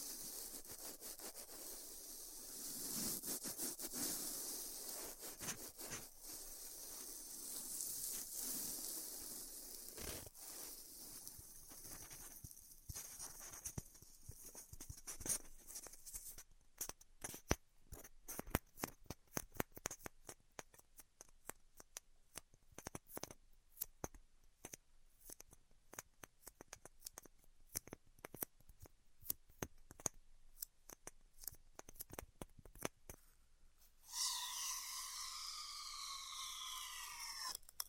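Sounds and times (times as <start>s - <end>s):
styrofoam heat cutting hiss: 0.0s - 15.6s, 34.1s - 37.6s
crackles and ticks: 4.8s - 33.4s, 34.1s - 37.8s.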